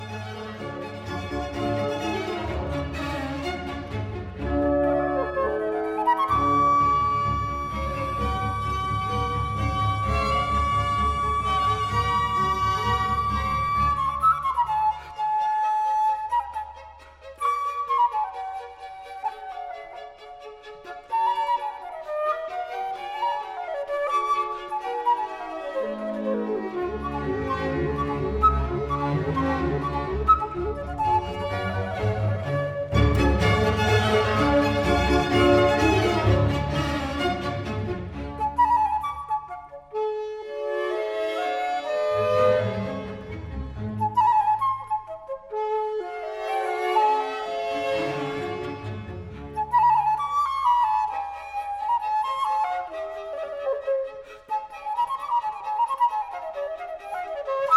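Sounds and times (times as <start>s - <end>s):
flute concerto in D major: 0.0s - 57.7s.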